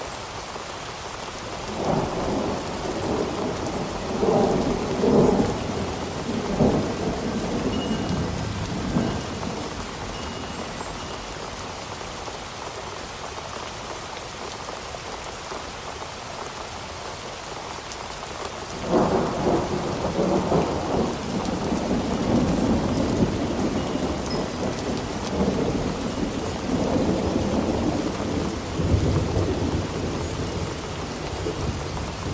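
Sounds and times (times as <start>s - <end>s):
steady storm rain hissing: 0.0s - 32.3s
low thunder rumbling: 1.6s - 11.4s, 18.7s - 32.3s.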